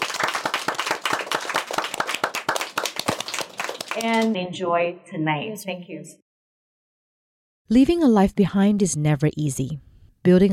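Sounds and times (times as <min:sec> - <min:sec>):
audience applause: 0:00.0 - 0:04.3
speech: 0:04.0 - 0:06.2, 0:07.7 - 0:10.5.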